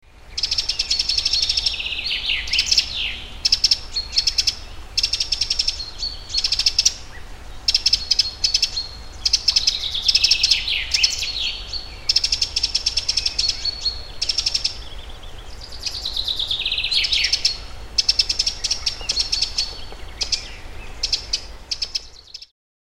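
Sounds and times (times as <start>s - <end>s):
low rumble: 0.1s - 22.4s
Eurasian wren song: 0.4s - 22.4s.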